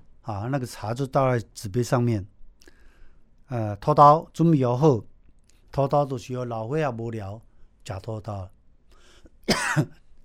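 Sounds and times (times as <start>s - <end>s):
speech: 0.2s - 2.3s, 3.5s - 5.1s, 5.7s - 8.6s, 9.5s - 10.0s
teacher coughing from talking too much: 9.4s - 10.1s.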